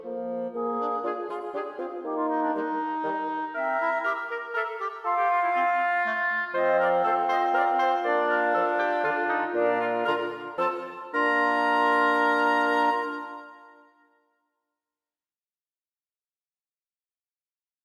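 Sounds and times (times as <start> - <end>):
wind quintet playing a minuet: 0.0 - 14.0.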